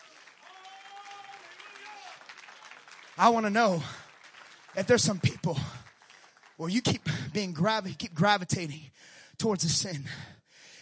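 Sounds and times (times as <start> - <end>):
crowd clapping: 0.0 - 8.4
speech: 3.2 - 4.0, 4.8 - 5.8, 6.6 - 10.4.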